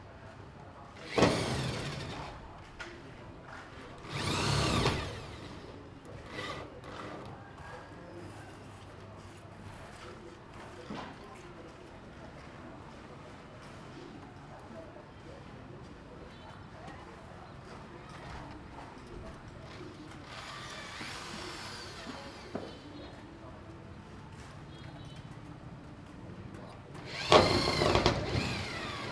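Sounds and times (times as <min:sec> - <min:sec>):
drills in Phnom Penh Cambodia: 0:01.1 - 0:02.6, 0:03.9 - 0:07.3, 0:19.7 - 0:22.9, 0:27.0 - 0:29.0.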